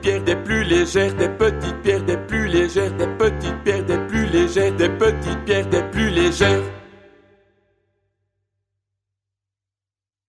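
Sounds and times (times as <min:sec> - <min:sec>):
baritone: 0:00.0 - 0:07.3.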